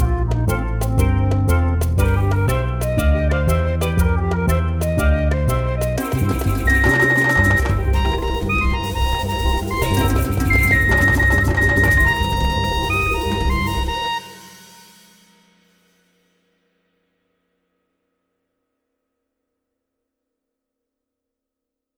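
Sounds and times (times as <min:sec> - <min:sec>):
MIDI blues music: 0:00.0 - 0:14.5.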